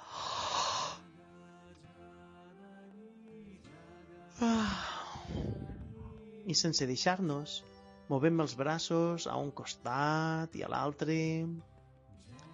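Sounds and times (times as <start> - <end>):
person sighing and yawning while stretching the arms upward: 0.0 - 1.0, 4.4 - 5.8
speech: 6.5 - 11.7.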